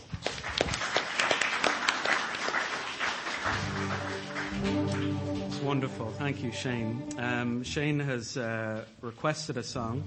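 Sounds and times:
audience clapping: 0.0s - 6.8s
speech: 5.7s - 10.0s.

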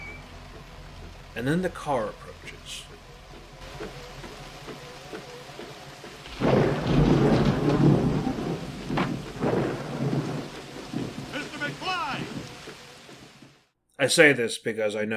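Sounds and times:
heavy rain: 0.0s - 13.7s
speech: 1.4s - 3.0s, 14.0s - 15.1s
rolling thunder: 6.2s - 13.6s.

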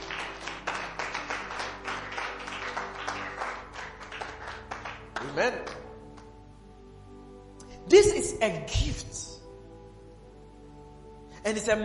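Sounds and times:
church congregation clapping hands rhythmically: 0.0s - 6.4s
speech: 5.3s - 5.8s, 7.9s - 9.1s, 11.4s - 11.8s.

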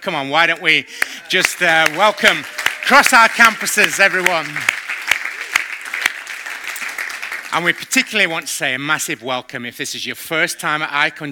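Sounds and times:
speech: 0.0s - 4.8s, 7.5s - 11.3s
church audience applauding: 1.0s - 8.5s.

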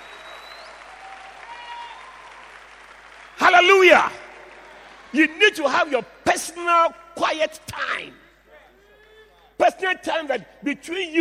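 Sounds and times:
audience clapping: 0.0s - 5.9s
speech: 3.6s - 4.2s, 5.1s - 8.2s, 9.8s - 11.2s.

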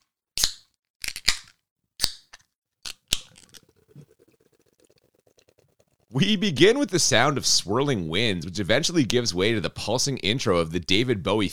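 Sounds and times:
beer can or bottle being cracked open: 0.4s - 3.4s
speech: 6.2s - 11.5s.

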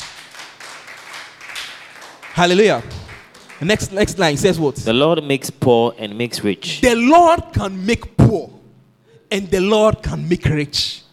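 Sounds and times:
audience clapping: 0.0s - 4.5s
speech: 2.4s - 3.0s, 3.6s - 8.5s, 9.3s - 11.0s.

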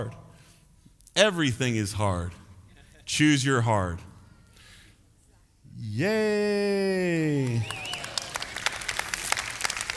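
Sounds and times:
speech: 1.2s - 2.4s, 3.1s - 4.1s, 5.8s - 7.9s
crowd clapping: 7.3s - 9.9s.

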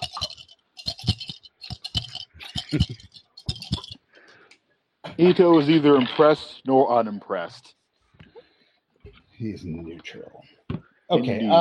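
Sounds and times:
dice shaken in a cup: 0.0s - 4.0s, 5.2s - 6.4s
speech: 2.7s - 3.0s, 5.2s - 7.7s, 9.4s - 10.5s, 11.1s - 11.5s.

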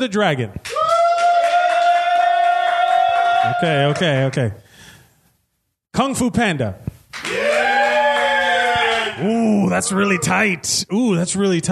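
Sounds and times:
speech: 0.0s - 0.7s, 3.4s - 4.6s, 6.0s - 6.9s, 9.2s - 11.7s
audience cheering: 0.7s - 4.4s, 7.2s - 10.5s.

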